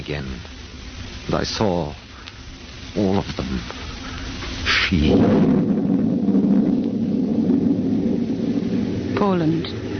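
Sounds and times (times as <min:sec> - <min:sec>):
speech: 0:00.1 - 0:00.6, 0:01.3 - 0:02.0, 0:02.9 - 0:03.8, 0:04.7 - 0:05.7, 0:09.2 - 0:09.9
thunder rolling during storm: 0:04.9 - 0:09.9.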